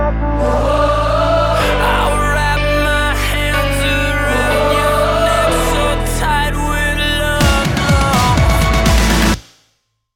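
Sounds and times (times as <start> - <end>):
male vocalists singing: 0.4 - 9.3.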